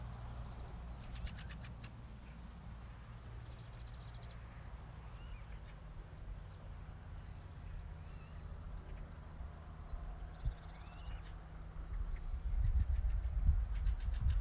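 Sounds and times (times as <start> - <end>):
other birds calling: 0.8 - 14.3.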